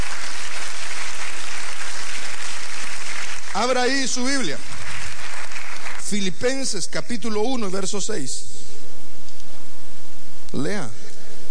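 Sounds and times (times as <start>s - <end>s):
audience applause: 0.0s - 6.4s
speech: 3.6s - 4.7s, 6.1s - 8.5s, 10.5s - 11.0s.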